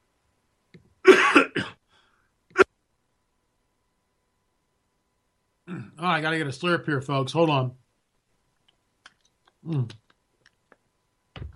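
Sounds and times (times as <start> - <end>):
man coughing: 1.0 - 1.8
speech: 5.8 - 7.8, 9.6 - 10.0.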